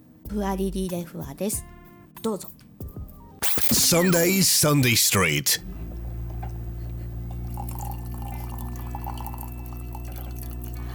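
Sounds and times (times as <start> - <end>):
speech: 0.3 - 2.6, 3.9 - 6.0
coffee being brewed, dripping: 5.6 - 10.9.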